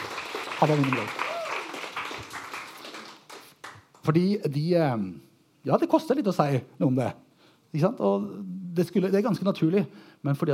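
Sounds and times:
audience applause: 0.0 - 4.0
speech: 0.6 - 1.2, 4.0 - 10.5.

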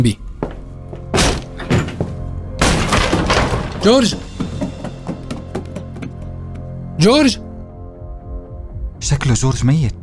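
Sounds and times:
speech: 0.0 - 0.3, 3.8 - 4.3, 7.0 - 7.4, 9.0 - 10.0
door being broken down: 1.1 - 6.0
wood splintering: 2.6 - 6.2.

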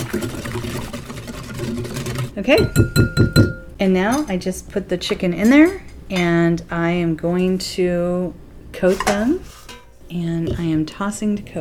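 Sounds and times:
spices being whisked into buttermilk: 0.0 - 3.6
speech: 2.4 - 11.6.

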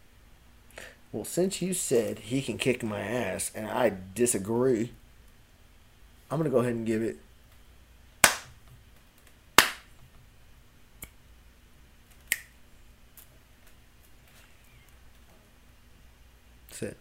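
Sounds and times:
low hum: 0.0 - 16.9
speech: 1.1 - 5.0, 6.3 - 7.3
hand slaps: 8.2 - 8.6, 9.6 - 9.9
finger snaps: 11.0 - 11.2, 12.2 - 12.6.

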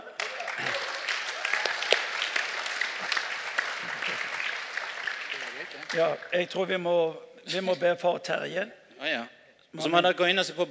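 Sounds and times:
voices cheering: 0.0 - 6.0
audience applause: 0.0 - 6.6
speech: 5.9 - 10.6.

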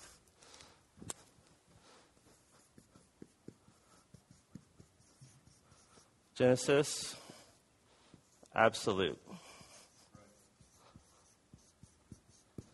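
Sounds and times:
pen writing on paper: 2.2 - 6.1, 9.6 - 12.7
speech: 6.4 - 7.2, 8.6 - 9.3.

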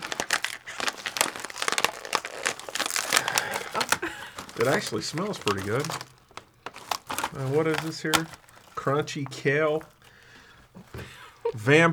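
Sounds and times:
plastic snack bag crinkling while being torn open: 0.0 - 11.6
speech: 4.6 - 6.1, 7.3 - 10.0, 11.6 - 11.9.

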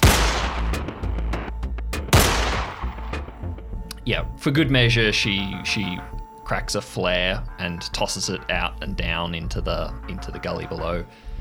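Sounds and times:
9mm pistol shots fired into the air: 0.0 - 1.0, 2.1 - 3.4
speech: 4.0 - 11.3.

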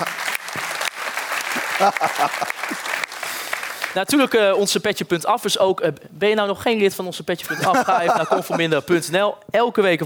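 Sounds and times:
crowd applause: 0.0 - 4.0
laughter: 1.5 - 3.0, 7.5 - 8.9
speech: 1.8 - 3.0, 3.9 - 10.0.

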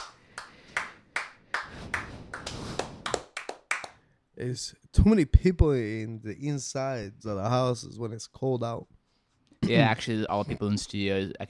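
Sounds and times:
sparse clapping from a few people in a studio: 0.0 - 4.0
speech: 4.4 - 9.0, 9.7 - 11.4.

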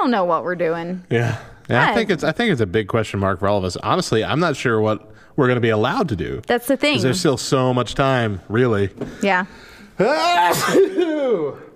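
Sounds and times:
speech: 0.0 - 11.7
person sneezing: 10.1 - 11.7.

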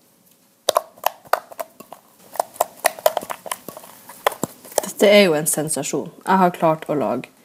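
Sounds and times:
homemade fluffy slime being squished: 0.7 - 5.1
speech: 5.0 - 7.4.

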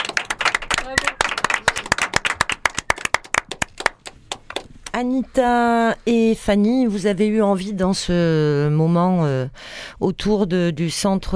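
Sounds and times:
people clapping in studio: 0.0 - 5.0
speech: 5.0 - 11.3.

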